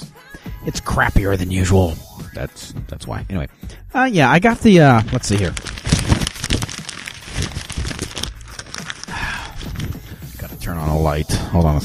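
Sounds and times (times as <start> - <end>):
speech: 0.6 - 5.7, 11.0 - 11.8
paper crumpling: 4.5 - 10.5.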